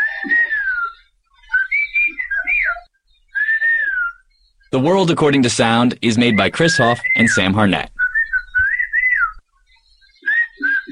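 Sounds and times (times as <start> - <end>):
loud, piercing whistles of whistled language: 0.0 - 4.6, 6.2 - 9.4, 10.1 - 10.9
speech: 4.8 - 7.9.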